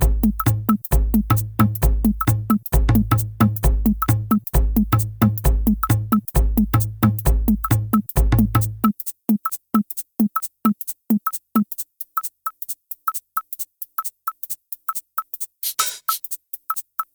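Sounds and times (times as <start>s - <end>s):
drum beat at 132 bpm: 0.0s - 11.8s, 15.6s - 16.4s.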